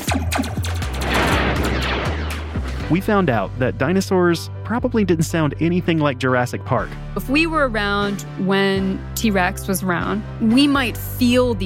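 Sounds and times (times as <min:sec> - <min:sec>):
blaster sound from a struck guy wire leading up to a radio tower: 0:00.0 - 0:02.9
speech: 0:02.9 - 0:11.6.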